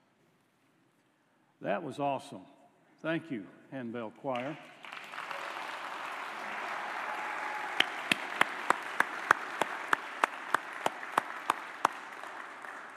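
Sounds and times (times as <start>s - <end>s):
speech: 1.6s - 4.8s
church audience applause: 4.8s - 12.9s.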